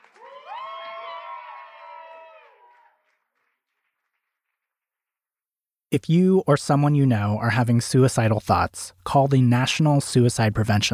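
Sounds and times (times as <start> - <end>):
audience applause: 0.0 - 4.5
speech: 5.9 - 10.9.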